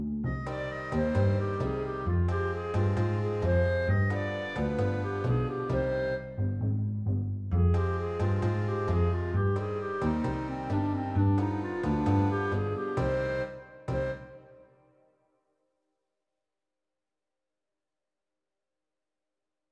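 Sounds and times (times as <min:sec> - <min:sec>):
tango trio playing: 0:00.3 - 0:14.4.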